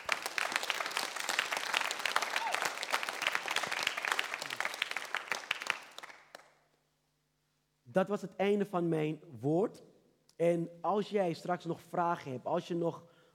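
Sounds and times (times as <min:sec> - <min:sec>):
audience applause: 0:00.0 - 0:06.5
speech: 0:08.0 - 0:13.1.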